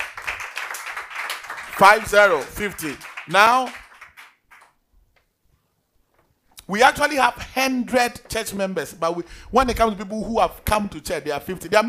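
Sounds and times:
crowd clapping: 0.0s - 4.8s
speech: 1.8s - 3.8s, 6.7s - 11.8s.

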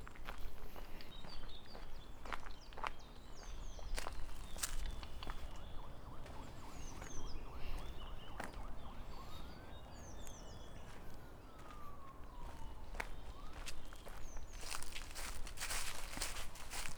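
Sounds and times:
birds chirping: 0.0s - 16.9s
footsteps crunching on a path in Tivoli Park Ljubljana: 0.1s - 16.9s.

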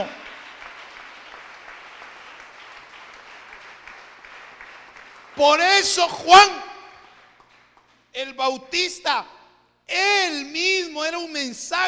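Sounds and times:
audience applauding: 0.0s - 6.0s, 7.0s - 8.0s
speech: 5.4s - 6.7s, 8.2s - 11.8s.

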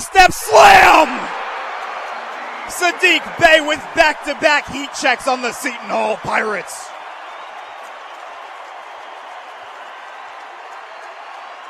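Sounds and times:
basketball arena crowd roaring: 0.0s - 11.6s
speech: 0.2s - 1.2s, 2.7s - 7.0s.

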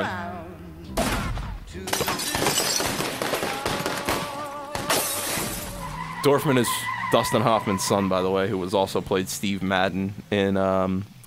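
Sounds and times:
glass shattering: 1.0s - 6.1s
debris crashing: 1.0s - 6.2s
car being blown up in a film: 1.0s - 6.5s
speech: 6.2s - 11.1s.

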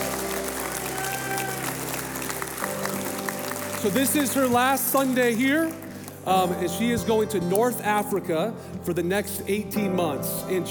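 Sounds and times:
church congregation applauding a speaker onto the stage: 0.0s - 7.1s
speech: 3.8s - 10.6s.

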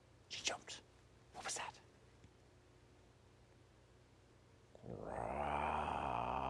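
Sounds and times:
cartoon stomach growl of a hungry character: 4.8s - 6.4s.

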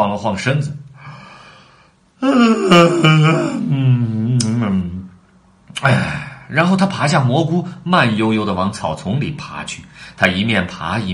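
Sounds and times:
speech: 0.2s - 0.9s, 2.2s - 4.9s, 5.8s - 11.1s
person acting out yawning: 2.2s - 5.1s.

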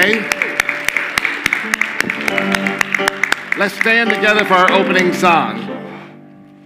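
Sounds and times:
speech: 0.0s - 0.4s, 3.6s - 5.6s
audience applause: 0.0s - 5.4s.

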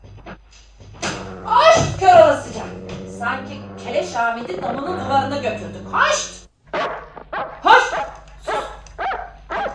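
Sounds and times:
dog barking: 2.5s - 9.7s
speech: 3.2s - 6.4s.

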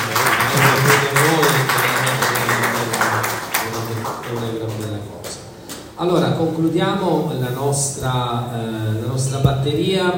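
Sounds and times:
loud clapping at a wine tasting: 0.0s - 5.9s
speech: 6.0s - 10.1s.

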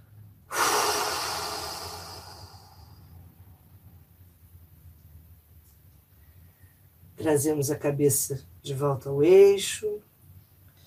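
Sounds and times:
forceful breath blown out during a guided breathing exercise: 0.5s - 3.1s
speech: 7.2s - 10.1s.

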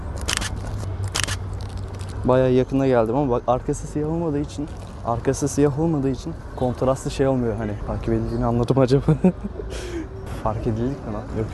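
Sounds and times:
camera shutter firing while photographing: 0.2s - 1.4s
speech: 2.2s - 11.5s
laughter: 8.9s - 10.1s.

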